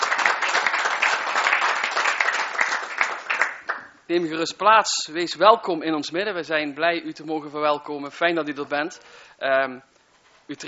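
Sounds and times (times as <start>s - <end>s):
applause: 0.0s - 4.0s
speech: 4.1s - 9.9s, 10.5s - 10.6s.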